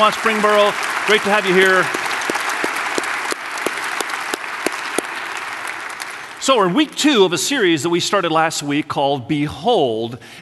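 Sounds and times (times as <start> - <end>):
speech: 0.0 - 2.0, 6.4 - 10.4
audience applause: 0.0 - 7.0.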